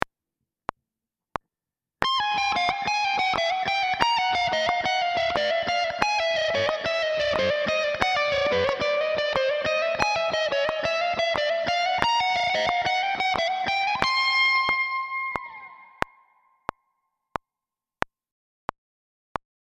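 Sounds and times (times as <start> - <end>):
slow guitar exercise: 2.0 - 16.6.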